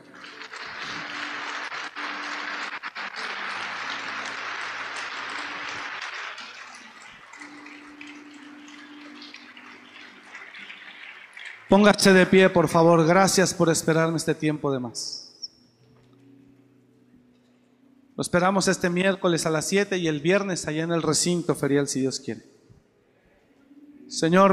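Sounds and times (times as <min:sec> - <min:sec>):
audience applauding: 0:00.0 - 0:12.3
speech: 0:11.7 - 0:15.2, 0:18.2 - 0:22.6, 0:24.2 - 0:24.5.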